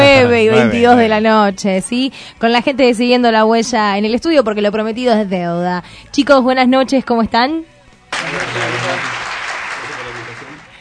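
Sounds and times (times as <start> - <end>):
speech: 0.4 - 9.2
applause sound effect: 8.1 - 10.7.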